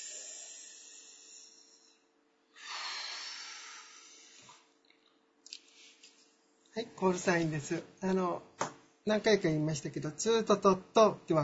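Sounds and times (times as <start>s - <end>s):
deep breath taken during a short rest break: 0.0s - 4.7s
speech: 6.8s - 11.4s.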